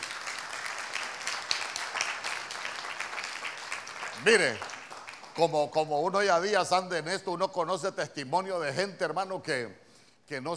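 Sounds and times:
crowd applauding: 0.0 - 5.7
speech: 4.2 - 4.7, 5.4 - 10.5.

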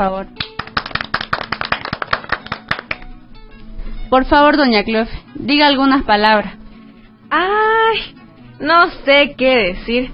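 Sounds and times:
speech: 0.0 - 0.5, 4.1 - 6.6, 7.3 - 10.1
crowd clapping: 0.4 - 3.1.

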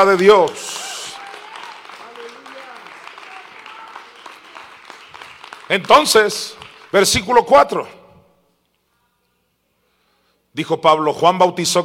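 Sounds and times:
speech: 0.0 - 0.7, 5.7 - 8.0, 10.6 - 11.8
crowd applauding: 0.0 - 7.2.

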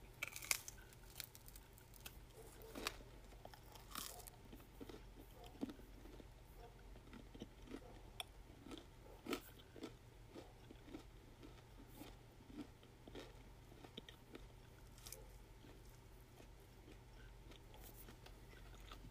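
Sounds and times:
low steady hum: 0.0 - 19.1
biting into crunchy pizza crust: 0.2 - 6.3, 7.0 - 8.0, 8.6 - 19.1
chewing: 0.2 - 19.1.

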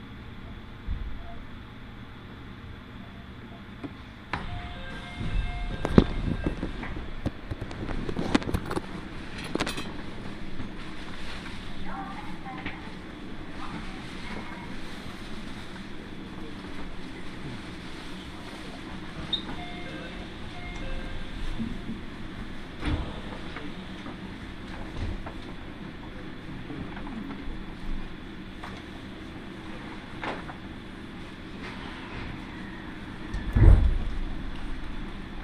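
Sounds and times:
Iida Line train carriage rumble: 0.0 - 35.4
loud train jolt: 4.3 - 10.1, 19.5 - 25.6, 33.4 - 35.4.

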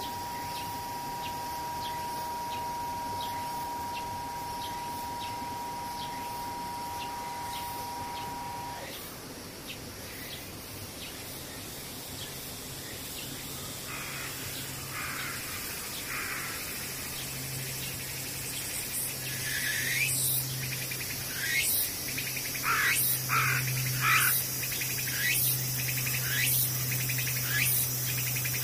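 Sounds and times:
level mid-pitched tone: 0.0 - 8.8
cicadas calling: 0.0 - 28.6
steady background drone: 0.0 - 28.6.

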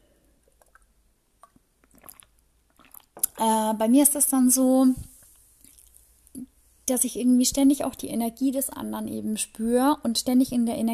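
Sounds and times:
person sipping a drink: 0.4 - 3.4, 5.6 - 6.0
speech: 3.4 - 5.1, 6.9 - 10.9.

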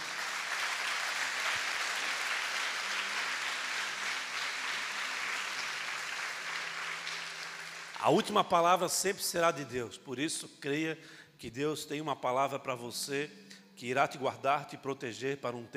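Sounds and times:
audience applause: 0.0 - 8.1
speech: 8.0 - 15.7.

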